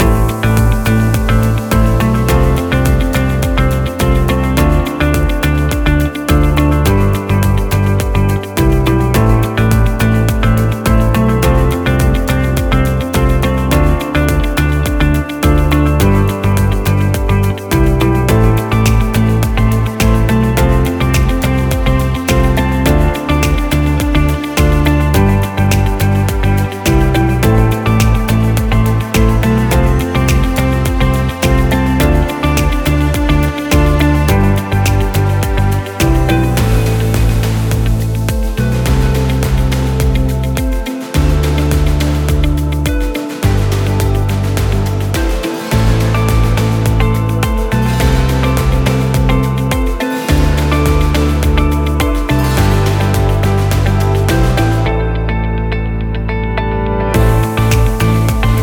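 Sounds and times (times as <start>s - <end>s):
inspiring aesthetic music loop: 0.0s - 58.6s.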